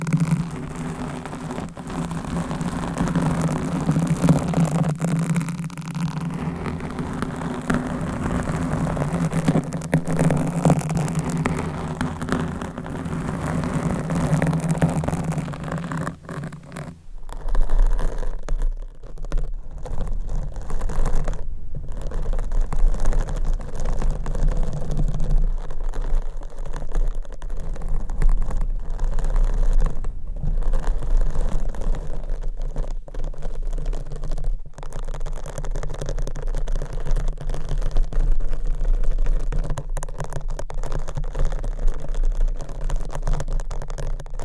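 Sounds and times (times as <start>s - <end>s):
deep rumble: 0.0s - 17.4s
low hum: 0.0s - 17.4s
microphone scratching and rubbing: 0.0s - 44.4s.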